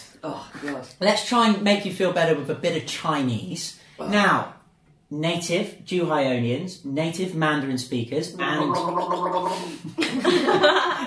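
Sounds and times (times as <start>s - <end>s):
speech: 0.2s - 11.0s
person gargling water: 8.4s - 9.8s
laughter: 8.7s - 11.0s.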